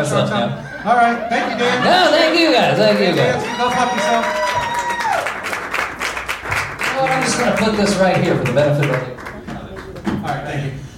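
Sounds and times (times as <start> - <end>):
speech: 0.0 - 4.4, 7.0 - 9.2
laughter: 0.3 - 3.4
audience clapping: 2.6 - 10.7.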